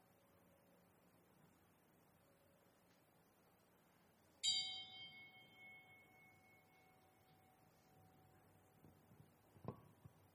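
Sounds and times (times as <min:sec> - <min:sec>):
monastery temple bell struck during a ceremony: 0:04.5 - 0:07.7
soft knock: 0:09.5 - 0:10.2.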